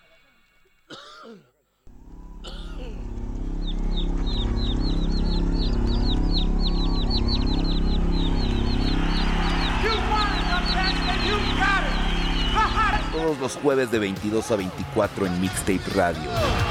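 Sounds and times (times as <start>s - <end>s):
speech: 1.2s - 1.5s, 13.5s - 16.6s
steady low rhythmic hum and thumping: 1.9s - 13.2s
chicks peeping: 2.0s - 13.3s.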